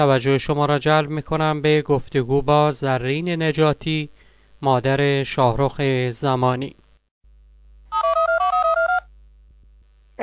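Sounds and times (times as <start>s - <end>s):
speech: 0.0s - 6.8s
telephone ringing as a call is placed for an interview: 7.9s - 9.1s.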